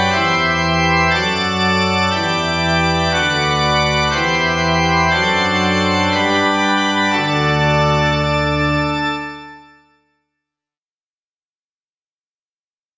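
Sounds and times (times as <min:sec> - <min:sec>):
church organ: 0:00.0 - 0:10.2.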